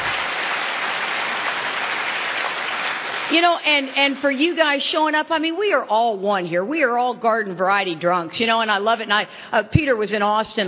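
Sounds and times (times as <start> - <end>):
audience applause: 0.0 - 3.4
speech: 3.3 - 10.6.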